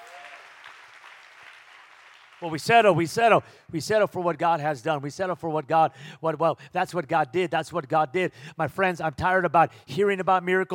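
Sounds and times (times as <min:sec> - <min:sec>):
audience clapping hands: 0:00.0 - 0:03.0
speech: 0:02.4 - 0:10.7.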